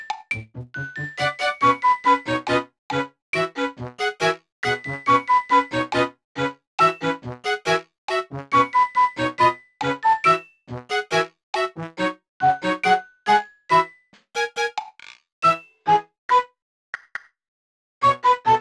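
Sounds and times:
gameplay music: 0.4s - 14.7s, 18.0s - 18.5s.

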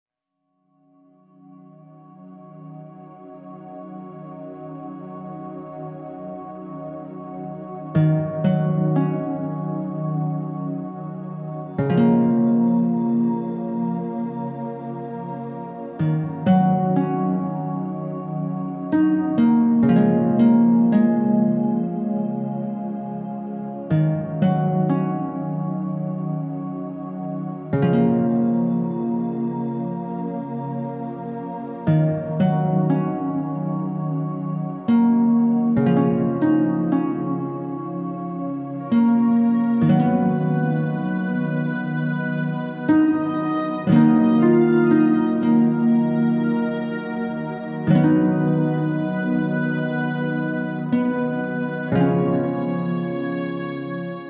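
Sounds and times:
forest ambient music: 1.0s - 54.2s.

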